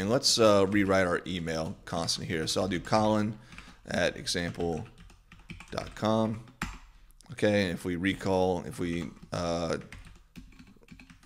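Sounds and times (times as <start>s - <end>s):
speech: 0.0s - 5.0s, 5.7s - 6.5s, 7.3s - 10.0s
computer keyboard typing in an interactive Ruby terminal: 0.6s - 6.9s, 8.6s - 11.2s.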